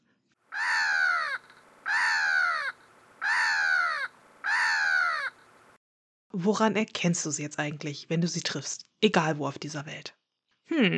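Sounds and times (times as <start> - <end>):
Black-headed Gull screeching: 0.5 - 5.7
speech: 6.4 - 10.9.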